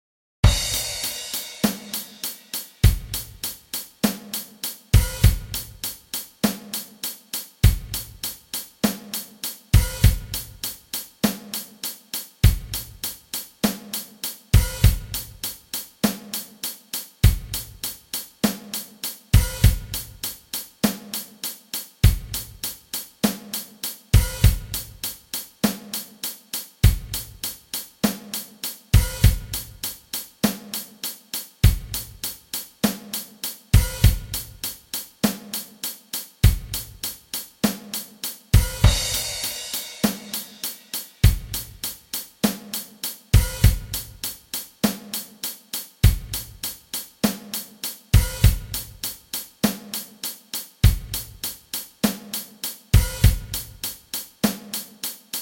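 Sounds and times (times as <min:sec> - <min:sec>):
drums: 0:00.4 - 0:55.4.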